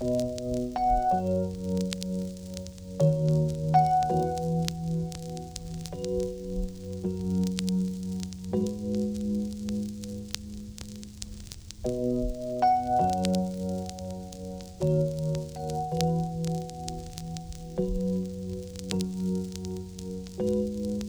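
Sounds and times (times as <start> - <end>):
full chords: 0.0 - 21.0.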